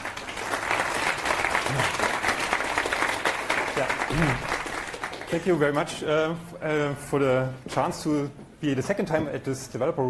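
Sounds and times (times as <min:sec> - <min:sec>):
audience applause: 0:00.0 - 0:05.7
speech: 0:04.1 - 0:04.6, 0:05.3 - 0:10.0.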